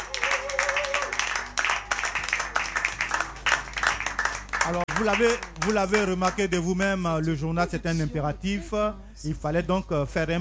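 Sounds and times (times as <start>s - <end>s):
studio audience clapping at a Christian radio station: 0.0s - 6.7s
speech: 4.7s - 10.3s.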